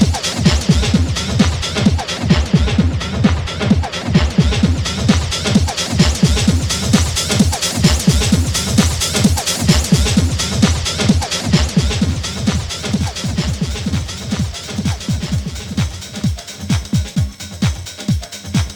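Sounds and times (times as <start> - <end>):
house drum loop with reactive delay: 0.0 - 18.7.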